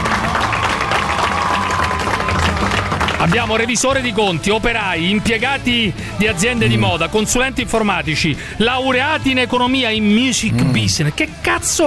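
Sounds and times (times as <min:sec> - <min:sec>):
audience applause: 0:00.0 - 0:03.6
speech: 0:03.2 - 0:11.8.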